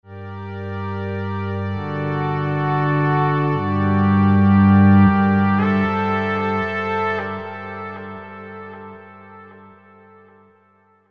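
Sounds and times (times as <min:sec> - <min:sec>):
synth pad: 0:00.1 - 0:10.3.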